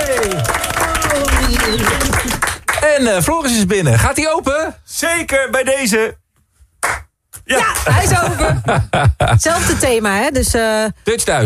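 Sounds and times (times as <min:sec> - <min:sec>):
audience applauding and cheering after a singer's live radio performance: 0:00.0 - 0:03.1
crowd voices: 0:00.3 - 0:02.7
speech: 0:03.0 - 0:06.2, 0:07.5 - 0:11.4.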